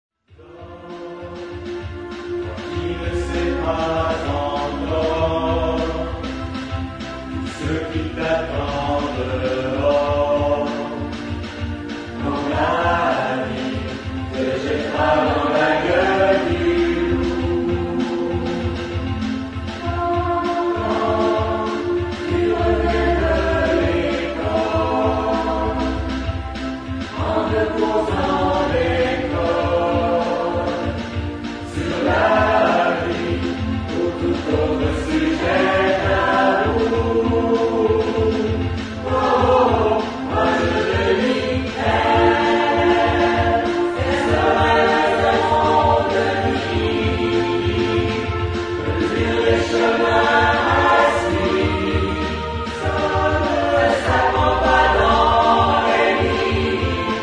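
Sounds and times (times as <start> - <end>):
SATB four-part choir singing: 0.3 - 57.2.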